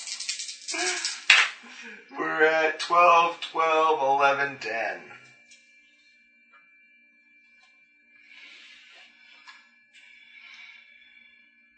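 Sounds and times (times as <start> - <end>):
dice rolling: 0.0 - 1.5
speech: 1.8 - 5.2.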